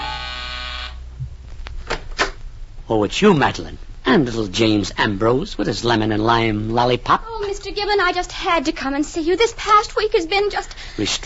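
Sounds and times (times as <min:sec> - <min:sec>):
door buzzer buzzing: 0:00.0 - 0:01.0
speech: 0:02.9 - 0:11.2.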